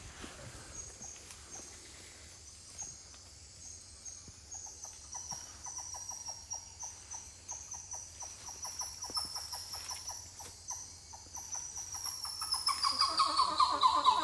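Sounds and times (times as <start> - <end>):
titi monkeys calling: 4.6 - 14.2.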